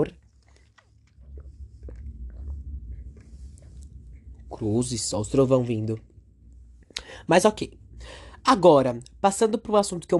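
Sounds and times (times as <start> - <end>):
speech: 0.0 - 0.2, 4.6 - 6.1, 7.2 - 10.1
sipping and swallowing water: 0.0 - 4.6.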